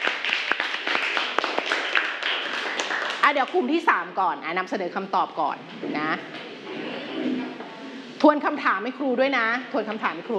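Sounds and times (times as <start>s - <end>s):
group of people clapping: 0.0s - 3.8s
speech: 3.3s - 6.5s, 8.2s - 10.3s.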